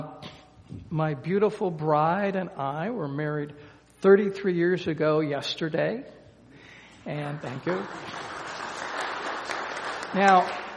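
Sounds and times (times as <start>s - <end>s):
speech: 0.9s - 6.2s, 7.0s - 8.3s, 10.1s - 10.6s
audience applause: 7.3s - 10.7s.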